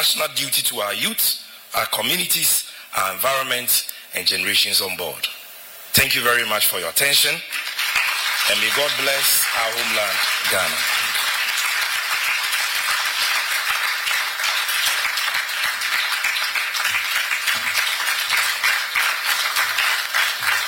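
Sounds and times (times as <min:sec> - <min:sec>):
speech: 0:00.0 - 0:07.7, 0:08.5 - 0:11.0
audience applause: 0:07.5 - 0:20.6.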